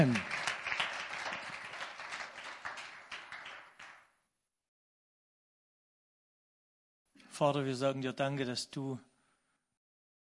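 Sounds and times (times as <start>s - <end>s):
audience applause: 0.0s - 4.1s
speech: 7.4s - 9.1s.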